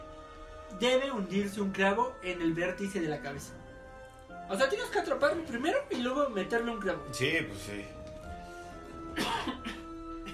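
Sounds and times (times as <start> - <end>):
speech: 0.7 - 3.6, 4.5 - 8.0
cough: 9.1 - 10.3.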